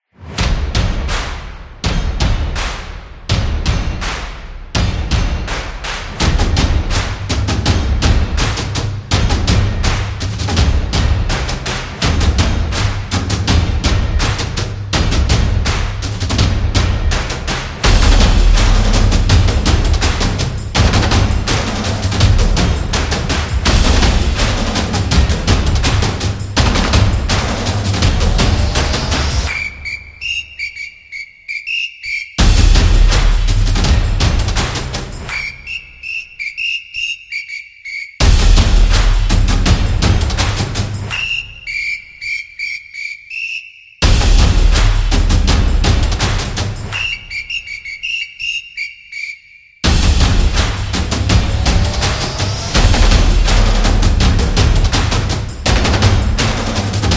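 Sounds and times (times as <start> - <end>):
soccer football music: 0.4 - 57.1.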